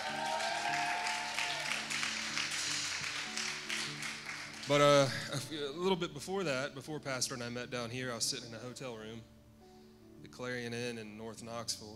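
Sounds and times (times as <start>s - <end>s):
church audience clapping: 0.0s - 4.8s
speech: 4.7s - 9.4s, 10.4s - 11.9s.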